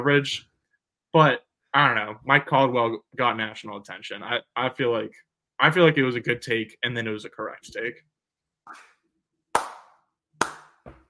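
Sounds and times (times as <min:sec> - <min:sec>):
speech: 0:00.0 - 0:00.5, 0:01.1 - 0:08.1, 0:08.7 - 0:08.9
hand clapping: 0:09.5 - 0:11.0.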